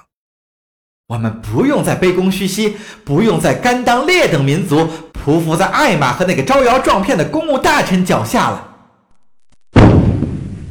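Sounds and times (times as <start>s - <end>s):
speech: 1.1s - 8.7s
thunderous explosion boom: 9.8s - 10.7s.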